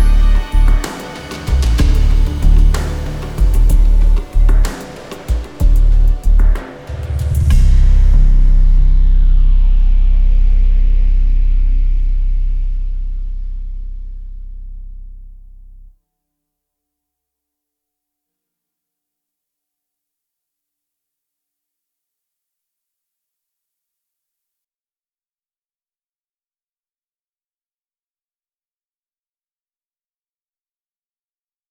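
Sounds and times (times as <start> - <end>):
ambient suspense music: 0.0 - 14.0.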